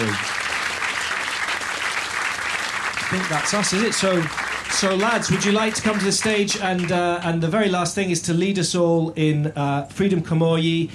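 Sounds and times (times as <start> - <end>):
audience applause: 0.0 - 7.1
speech: 3.1 - 10.9.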